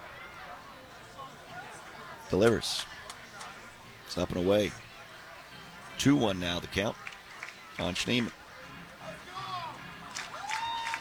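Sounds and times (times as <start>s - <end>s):
ballpark crowd cheering: 0.0s - 10.9s
speech: 2.3s - 2.9s, 4.1s - 4.8s, 6.0s - 7.0s, 7.8s - 8.4s
clapping and shouts: 7.0s - 8.4s, 9.2s - 10.9s.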